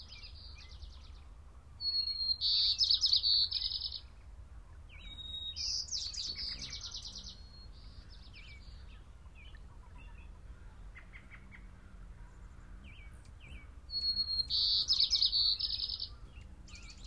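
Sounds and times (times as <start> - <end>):
sounds of clean nature: 0.0 - 17.0.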